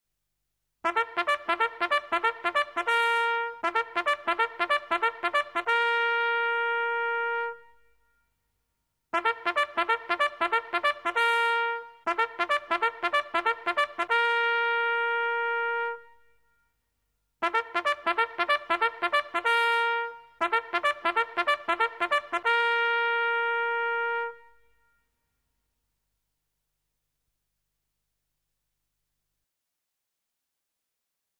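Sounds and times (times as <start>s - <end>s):
military trumpet call: 0.8s - 7.8s, 9.2s - 16.2s, 17.4s - 24.8s.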